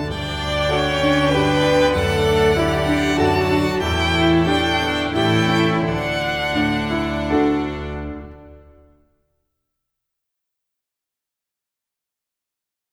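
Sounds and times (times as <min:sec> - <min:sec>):
French folk song: 0:00.0 - 0:08.7.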